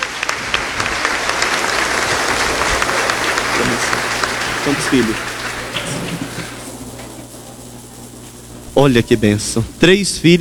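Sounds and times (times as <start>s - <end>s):
audience applause: 0.0s - 10.4s
laughter: 0.0s - 10.4s
speech: 4.7s - 5.3s, 8.8s - 10.4s.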